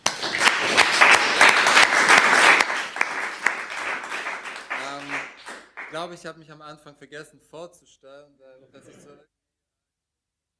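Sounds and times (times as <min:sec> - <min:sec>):
audience applause: 0:00.0 - 0:06.1
speech: 0:06.0 - 0:09.4.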